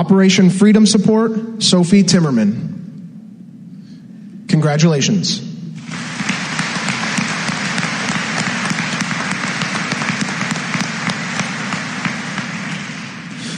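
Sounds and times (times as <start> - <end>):
speech: 0.0 - 2.8, 4.5 - 6.0
audience applause at a scholarship awards ceremony: 5.8 - 13.5.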